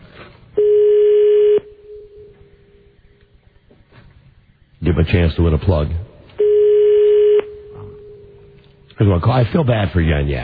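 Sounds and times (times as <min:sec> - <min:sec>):
foreign telephone ringing tone: 0:00.6 - 0:02.3, 0:06.4 - 0:08.2
speech: 0:05.0 - 0:06.1, 0:09.0 - 0:10.4.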